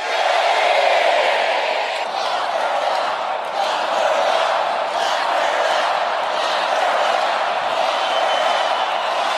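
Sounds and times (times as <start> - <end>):
political rally audience chanting and cheering: 0.0 - 9.3.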